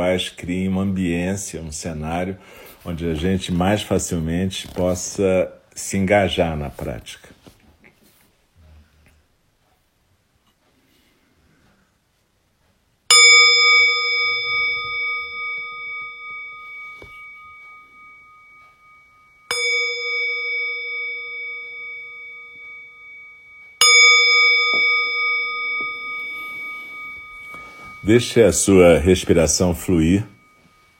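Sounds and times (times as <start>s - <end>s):
speech: 0.0s - 7.3s, 28.1s - 30.4s
meditation bell ringing: 13.1s - 30.9s.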